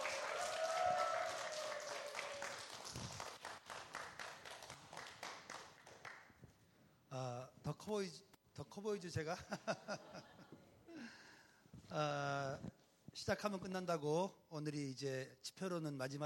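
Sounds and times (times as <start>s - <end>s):
audience applause welcoming a speaker: 0.0s - 6.2s
speech: 7.2s - 10.5s, 11.9s - 16.2s
laughter: 9.4s - 11.0s.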